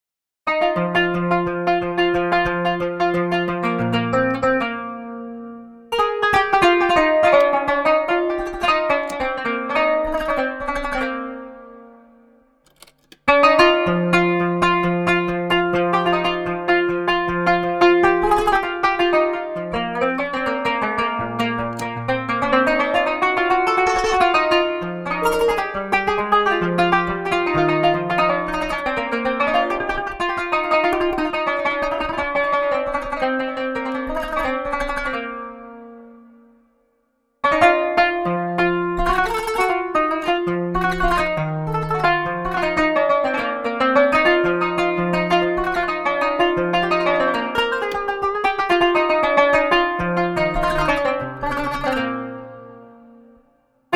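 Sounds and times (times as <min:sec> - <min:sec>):
authentic oriental plucked string instrument: 0:00.5 - 0:36.6, 0:37.4 - 0:53.9.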